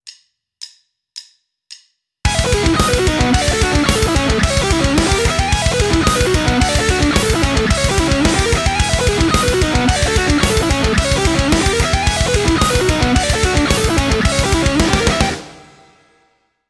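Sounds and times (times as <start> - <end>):
guitar: 2.3 - 16.1.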